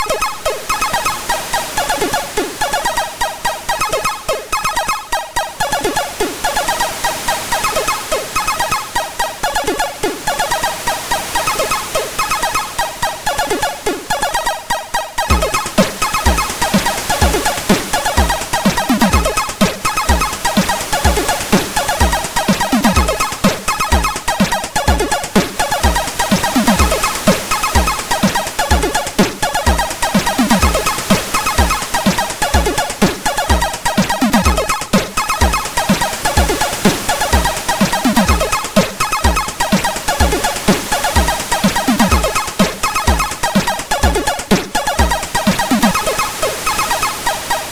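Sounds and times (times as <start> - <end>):
chiptune song on MOS6581R4 SID chip: 0.0 - 47.7.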